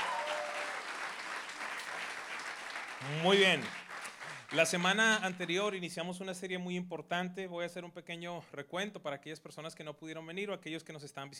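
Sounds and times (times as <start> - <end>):
audience applause: 0.0 - 5.8
speech: 3.0 - 3.8, 4.5 - 11.3.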